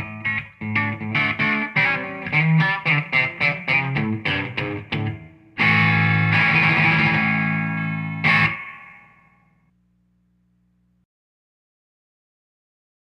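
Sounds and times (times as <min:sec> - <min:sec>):
Stratocaster electric guitar playing swing with light grind: 0:00.0 - 0:09.2.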